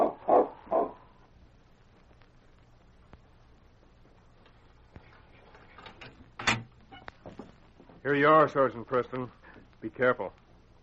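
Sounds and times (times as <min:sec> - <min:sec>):
sled dog barking: 0:00.0 - 0:01.1
speech: 0:08.1 - 0:10.4.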